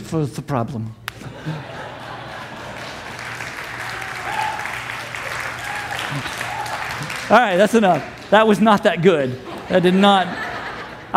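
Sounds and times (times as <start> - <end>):
speech: 0.1 - 1.7, 6.1 - 6.4, 7.3 - 10.5
laughter: 1.2 - 4.6, 9.2 - 11.1
applause from a sizable audience: 1.5 - 9.0.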